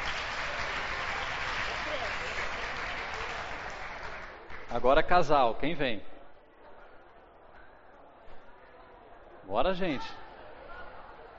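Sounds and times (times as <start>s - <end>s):
audience clapping: 0.0s - 4.8s
speech: 4.7s - 6.1s, 9.5s - 10.2s.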